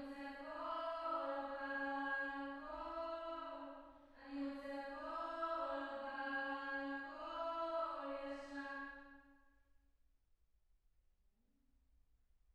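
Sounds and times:
choir singing: 0.1 - 9.0.

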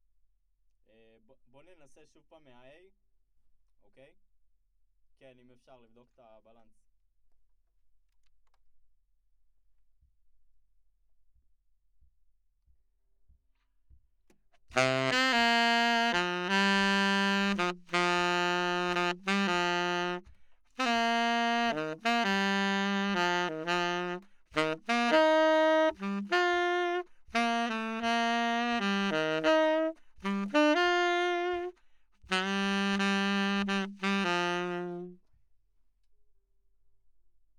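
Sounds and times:
saxophone: 14.7 - 35.2.

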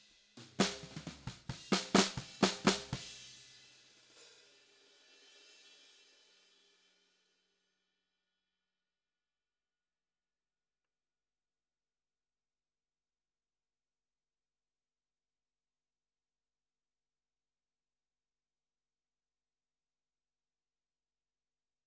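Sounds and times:
snare drum: 0.0 - 4.4.

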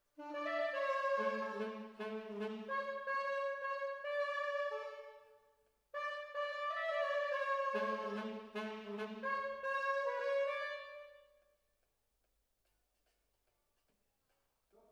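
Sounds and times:
horns playing: 0.2 - 5.2, 6.0 - 11.1.

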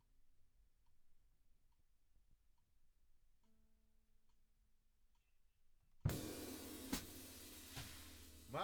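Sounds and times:
drums: 6.0 - 8.6.

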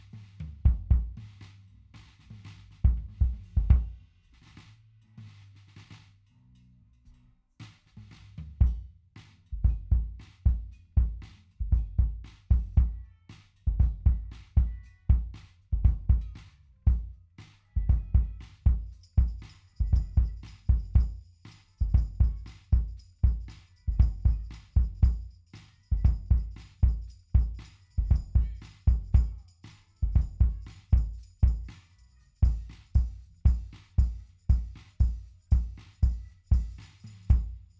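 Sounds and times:
kick drum: 0.0 - 1.3, 2.8 - 4.0, 8.6 - 8.9, 9.6 - 13.1, 13.7 - 31.8, 32.4 - 37.7.

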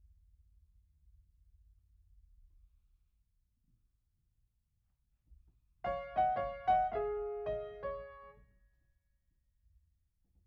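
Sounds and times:
piano: 5.8 - 8.5.

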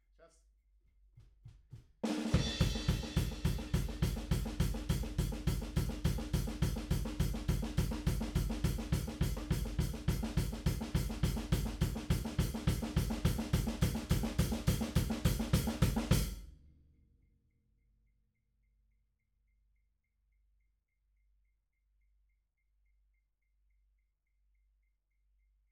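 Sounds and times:
drum: 1.3 - 16.4.

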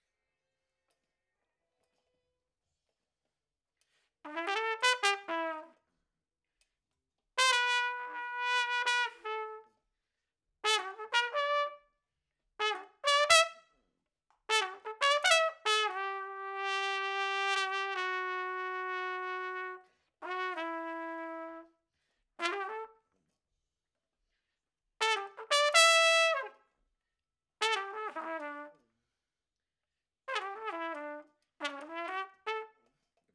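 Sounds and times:
trumpet: 4.3 - 5.8, 7.4 - 9.8, 10.6 - 11.9, 12.6 - 13.7, 14.5 - 21.8, 22.4 - 23.0, 25.0 - 26.6, 27.6 - 28.9, 30.3 - 32.9.

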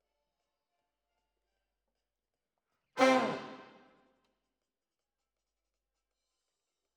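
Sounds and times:
trombones: 3.0 - 3.7.

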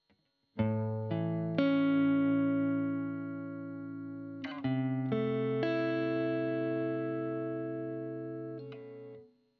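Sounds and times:
guitar recorded with Royer microphone: 0.6 - 9.4.

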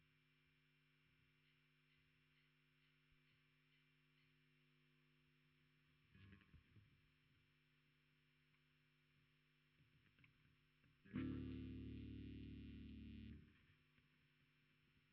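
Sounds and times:
bass guitar through SansAmp: 11.0 - 13.7.

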